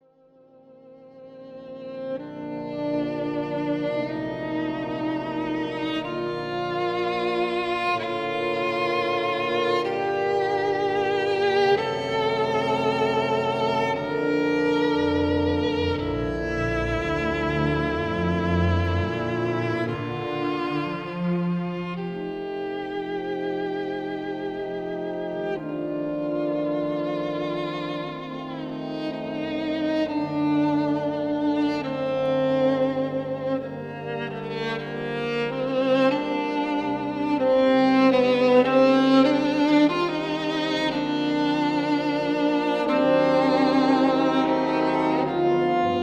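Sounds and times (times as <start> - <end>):
violin: 0.0 - 46.0.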